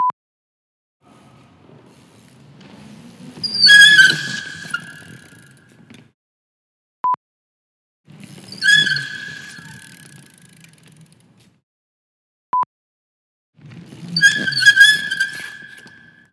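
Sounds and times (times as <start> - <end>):
indoor brake squeak: 1.1 - 6.0, 8.1 - 11.4, 13.8 - 16.2.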